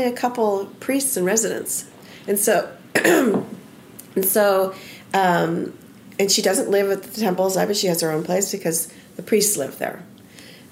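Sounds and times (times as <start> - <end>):
speech: 0.0 - 3.6, 4.2 - 10.1
person clearing throat with a tickle in the throat: 3.0 - 3.6.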